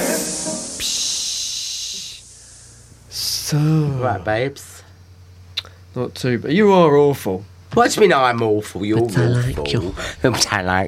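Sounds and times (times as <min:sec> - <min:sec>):
aerosol air freshener spray hissing: 0:00.0 - 0:02.8
speech: 0:03.5 - 0:04.7, 0:06.0 - 0:10.8.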